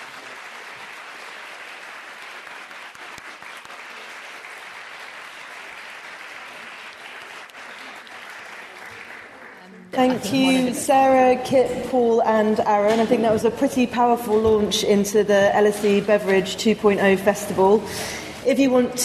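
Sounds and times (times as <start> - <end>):
audience applause for panellists: 0.0 - 10.1
speech: 10.0 - 19.0.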